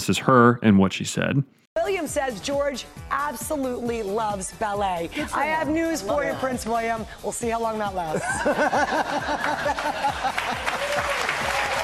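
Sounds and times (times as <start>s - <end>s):
speech: 0.0s - 11.1s
laughter: 8.1s - 11.8s
audience applause: 9.2s - 11.8s.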